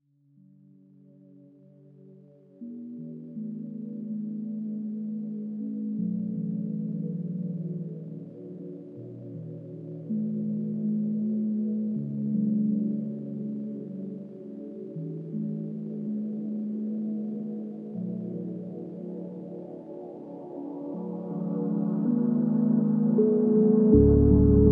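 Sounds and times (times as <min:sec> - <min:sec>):
slowed music with reverb: 0:00.8 - 0:24.7.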